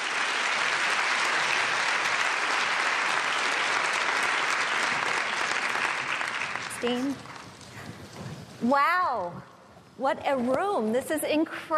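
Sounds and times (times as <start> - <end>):
audience applause welcoming speakers to the stage: 0.0 - 7.6
speech: 6.8 - 7.3, 8.6 - 11.7.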